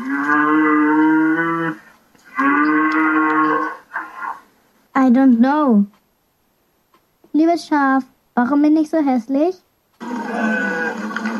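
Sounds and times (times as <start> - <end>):
cow mooing: 0.0 - 4.4, 10.0 - 11.3
speech: 5.2 - 6.0, 7.4 - 9.6.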